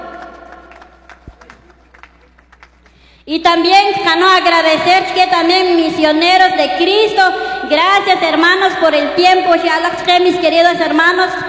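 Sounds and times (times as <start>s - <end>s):
audience clapping: 0.0s - 3.2s
speech: 3.2s - 11.4s.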